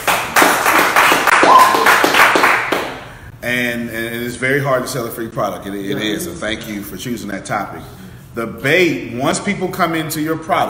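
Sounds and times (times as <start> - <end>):
audience clapping: 0.0 - 3.1
speech: 3.5 - 10.6.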